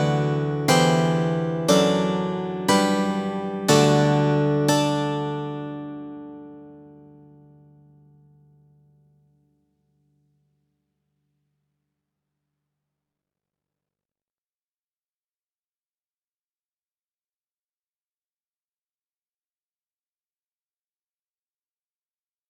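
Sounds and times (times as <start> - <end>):
steel string guitar: 0.0 - 7.5.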